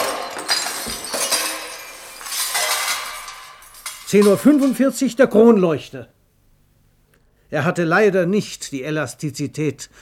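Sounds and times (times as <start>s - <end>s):
glass bottles shattering: 0.0s - 5.1s
speech: 4.1s - 6.2s, 7.5s - 10.0s.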